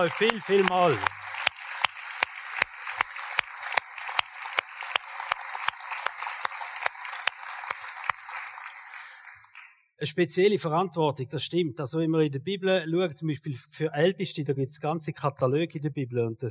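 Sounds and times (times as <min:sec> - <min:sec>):
speech: 0:00.0 - 0:01.2, 0:10.0 - 0:16.5
audience applause: 0:00.0 - 0:09.8.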